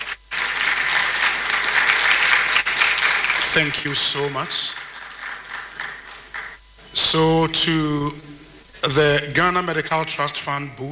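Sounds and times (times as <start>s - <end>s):
crowd applauding: 0.0s - 7.4s
speech: 3.6s - 4.8s, 7.1s - 10.8s.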